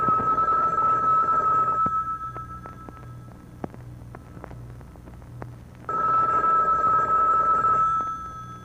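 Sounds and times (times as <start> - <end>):
telephone ringing: 0.0 - 3.6, 5.9 - 8.6.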